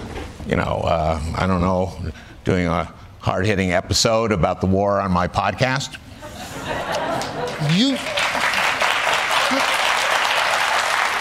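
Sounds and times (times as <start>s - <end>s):
speech: 0.5s - 7.0s, 7.6s - 8.2s
laughter: 6.2s - 8.6s, 9.3s - 10.1s
studio audience clapping: 6.9s - 11.2s.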